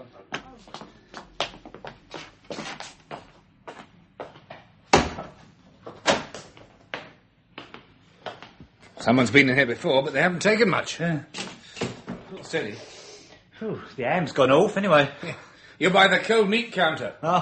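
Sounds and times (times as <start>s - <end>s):
shop door being opened: 6.0s - 6.4s
speech: 9.0s - 11.4s, 12.5s - 12.9s, 13.6s - 17.4s.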